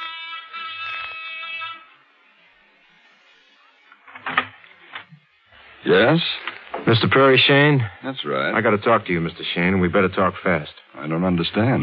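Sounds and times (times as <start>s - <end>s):
apartment door buzzer being pushed: 0.0s - 5.8s
speech: 5.8s - 11.8s.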